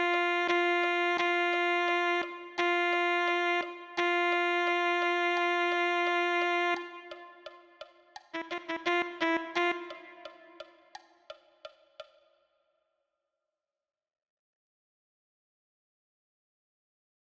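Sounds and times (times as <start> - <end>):
alto saxophone: 0.0 - 10.8.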